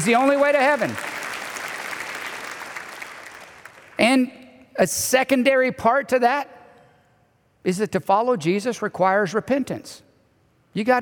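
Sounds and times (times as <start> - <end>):
speech: 0.0 - 1.2, 4.0 - 6.6, 7.6 - 10.1, 10.8 - 11.0
crowd clapping: 0.0 - 4.0.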